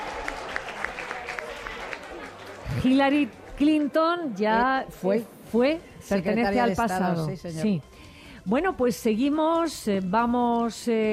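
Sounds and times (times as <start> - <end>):
audience applause for a correct quiz answer: 0.0 - 3.5
speech: 2.8 - 11.1.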